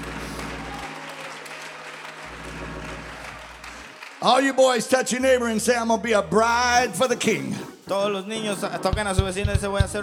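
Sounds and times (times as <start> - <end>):
audience clapping hands: 0.0 - 5.3
speech: 4.2 - 10.0.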